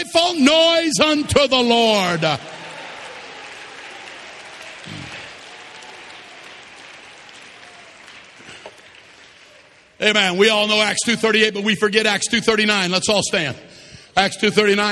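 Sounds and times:
speech: 0:00.0 - 0:02.6, 0:10.0 - 0:14.8
audience clapping hands: 0:01.8 - 0:10.9.

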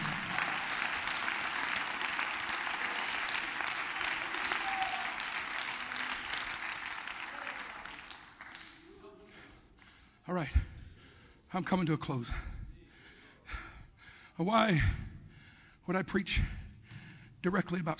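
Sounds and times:
audience clapping hands: 0:00.0 - 0:09.0
speech: 0:10.4 - 0:10.7, 0:11.5 - 0:12.5, 0:14.4 - 0:15.0, 0:15.9 - 0:16.6, 0:17.4 - 0:17.9.

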